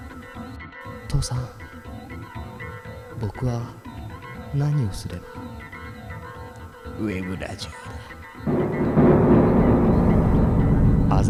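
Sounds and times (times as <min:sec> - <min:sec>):
speech: 0:01.1 - 0:01.6, 0:03.2 - 0:03.8, 0:04.5 - 0:05.6, 0:07.0 - 0:08.0
thunder rumbling: 0:08.5 - 0:11.2.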